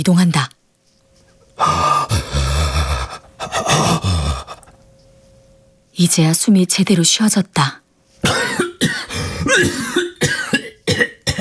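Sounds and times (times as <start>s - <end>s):
speech: 0.0s - 0.6s, 1.6s - 2.0s, 6.0s - 8.4s
coughing fit: 1.6s - 4.7s, 8.2s - 11.3s.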